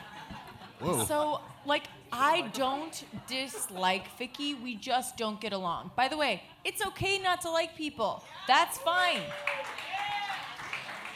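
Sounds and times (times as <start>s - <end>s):
speech: 0.8s - 9.9s
audience clapping: 9.2s - 11.1s.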